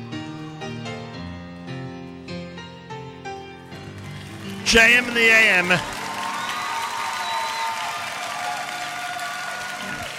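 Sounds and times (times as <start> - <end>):
audience applause after live performance: 3.8 - 10.1
crowd cheering: 4.0 - 10.1
speech: 4.7 - 6.0
high whistle-like tones: 6.2 - 8.2.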